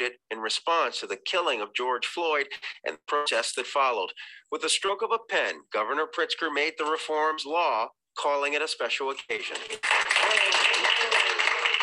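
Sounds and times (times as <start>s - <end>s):
speech: 0.0s - 10.8s
crowd clapping: 9.4s - 11.8s.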